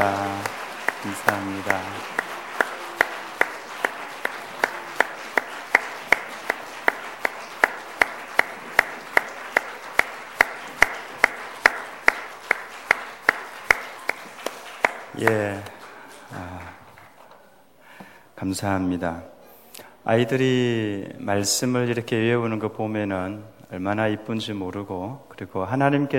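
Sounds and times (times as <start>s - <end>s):
audience applause: 0.0s - 17.4s
speech: 1.0s - 2.3s, 18.5s - 19.4s, 20.0s - 26.1s.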